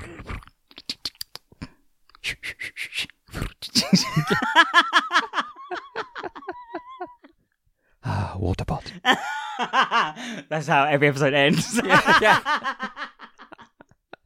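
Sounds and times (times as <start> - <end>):
person imitating soft rustling with mouth sounds: 0.0 - 3.9
laughter: 3.8 - 7.4, 9.1 - 10.4, 11.5 - 14.2
speech: 3.9 - 5.1, 10.2 - 12.8.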